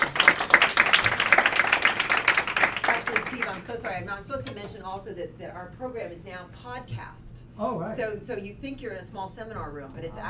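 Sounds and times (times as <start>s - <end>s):
audience clapping in a seminar room to welcome a guest speaker: 0.0s - 4.0s
speech: 3.3s - 10.2s.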